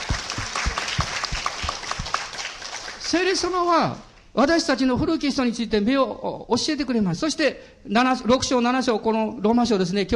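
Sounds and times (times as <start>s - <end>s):
audience applause: 0.0s - 3.3s
speech: 3.1s - 10.1s.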